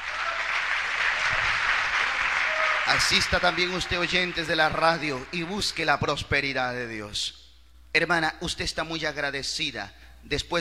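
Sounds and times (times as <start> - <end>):
church congregation applauding: 0.0 - 6.2
speech: 2.9 - 10.5.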